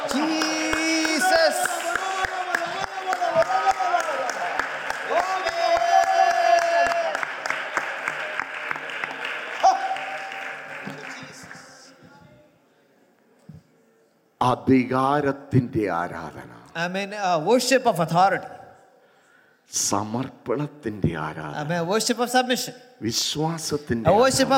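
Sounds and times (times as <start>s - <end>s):
audience clapping: 0.0s - 12.0s
speech: 14.6s - 18.6s, 19.7s - 24.5s.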